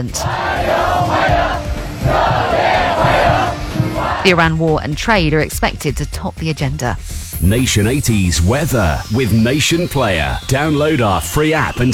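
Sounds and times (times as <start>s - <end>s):
speech: 0.0s - 1.5s, 4.2s - 11.9s
crowd of students cheering: 0.0s - 4.5s.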